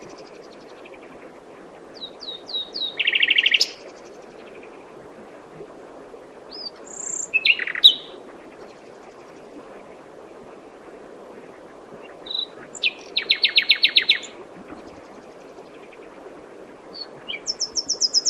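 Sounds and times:
common nightingale Luscinia megarhynchos singing: 2.0s - 3.9s, 6.5s - 8.2s, 12.0s - 14.4s, 16.9s - 18.2s.

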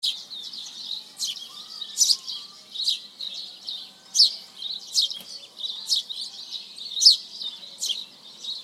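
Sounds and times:
house sparrow Passer domesticus chirping: 0.0s - 8.6s.

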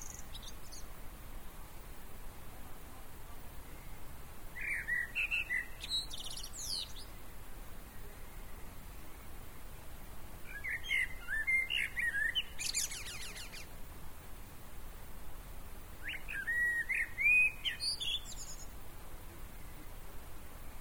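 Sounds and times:
common blackbird singing: 0.0s - 0.9s, 3.7s - 7.2s, 10.4s - 13.7s, 16.0s - 18.8s.

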